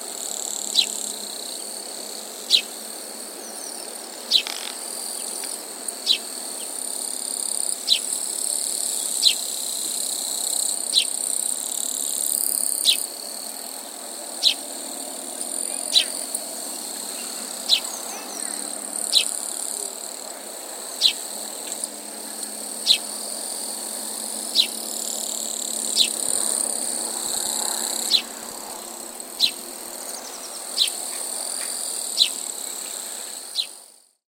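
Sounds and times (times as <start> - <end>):
grasshopper: 0.0 - 34.2
sparrow: 3.7 - 4.8, 6.0 - 6.2, 15.6 - 16.3, 17.1 - 19.4, 21.0 - 21.2, 22.8 - 23.1, 26.0 - 26.4, 28.0 - 28.4, 29.4 - 32.5, 33.5 - 33.8.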